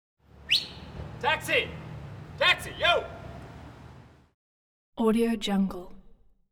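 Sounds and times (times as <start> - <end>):
man whistling for taxi: 0.4 - 1.1
man yelling for taxi: 1.1 - 3.7.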